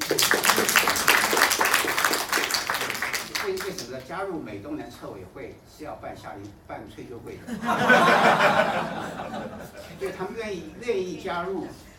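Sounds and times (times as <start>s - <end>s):
crowd applauding: 0.0s - 3.8s
speech: 0.1s - 0.6s, 4.0s - 11.9s
laughter: 7.4s - 10.1s.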